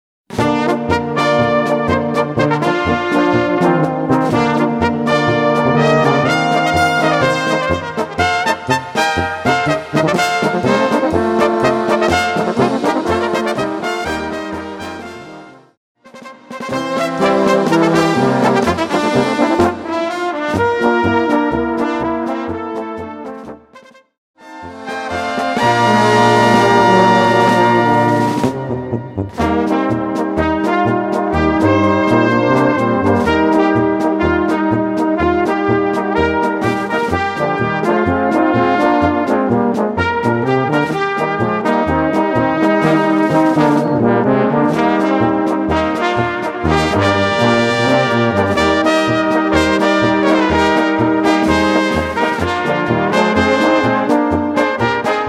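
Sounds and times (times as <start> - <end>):
polka music: 0.3 - 55.2.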